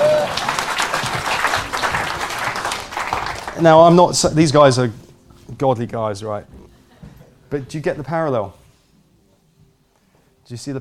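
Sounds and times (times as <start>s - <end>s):
crowd clapping: 0.0s - 4.2s
speech: 3.6s - 6.6s, 7.5s - 8.6s, 10.5s - 10.7s.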